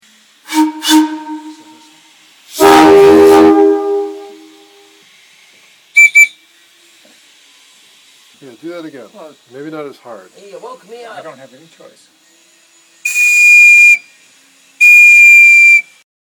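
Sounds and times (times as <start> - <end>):
rail whistles: 0.4 - 5.0, 6.0 - 6.6, 12.2 - 16.0.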